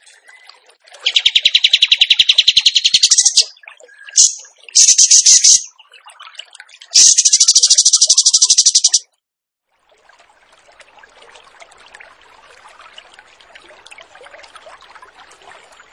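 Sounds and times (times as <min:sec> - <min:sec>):
bird song of rapid rattling trills: 0:01.0 - 0:03.5, 0:04.1 - 0:05.7, 0:07.0 - 0:09.0.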